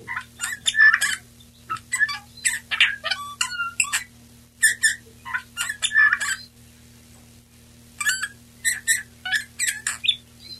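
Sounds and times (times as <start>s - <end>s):
male Eurasian bullfinch Pyrrhula pyrrhula singing: 0.1s - 6.5s, 8.0s - 10.5s.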